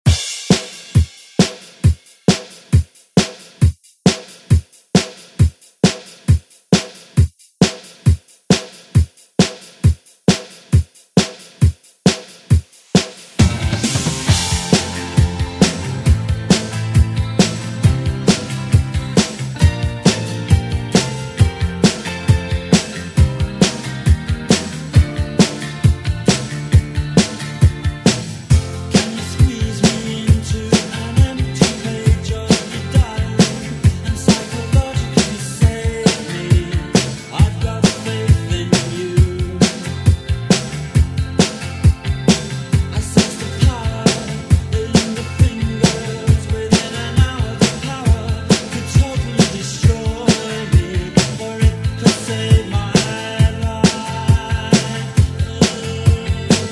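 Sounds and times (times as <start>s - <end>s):
eighties drum beat: 0.0s - 56.7s.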